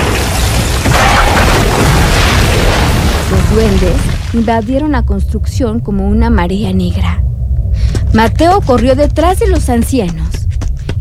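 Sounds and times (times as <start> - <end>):
cabin roof collapsing: 0.0 - 4.5
speech: 3.5 - 7.3, 8.1 - 10.4.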